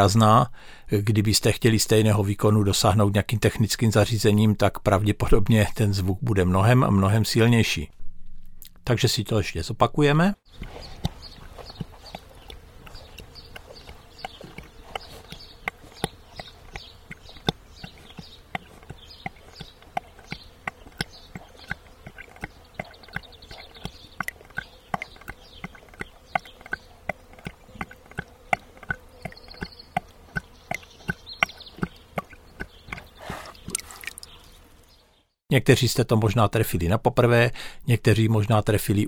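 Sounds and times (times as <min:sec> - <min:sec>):
speech: 0:00.0 - 0:08.0, 0:08.8 - 0:10.9, 0:35.6 - 0:39.0
horse gulping water from a plastic bucket: 0:10.5 - 0:34.6.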